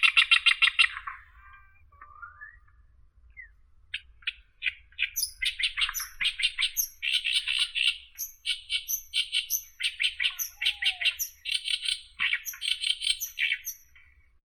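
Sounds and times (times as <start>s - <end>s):
oriental reed warbler Acrocephalus orientalis: 4.0s - 14.0s.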